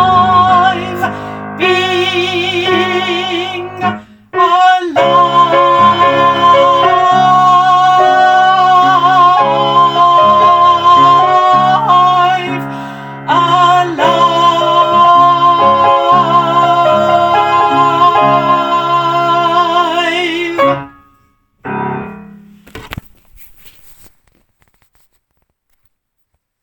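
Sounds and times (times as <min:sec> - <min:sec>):
second soprano singing: 0:00.0 - 0:21.0.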